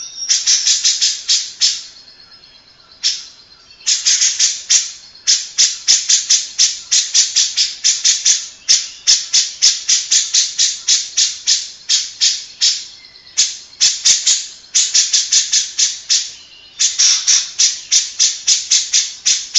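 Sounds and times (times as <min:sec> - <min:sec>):
Grey-cheeked bulbul song: 0:00.0 - 0:19.5.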